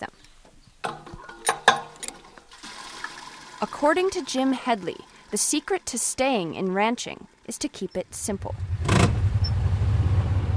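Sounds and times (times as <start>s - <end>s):
small tractor engine driving: 0.9s - 7.6s, 8.4s - 10.5s
speech: 3.6s - 8.7s.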